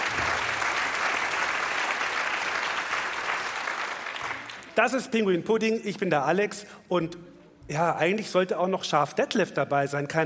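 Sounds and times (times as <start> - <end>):
audience applause for the conductor: 0.0 - 4.8
speech: 4.8 - 10.2.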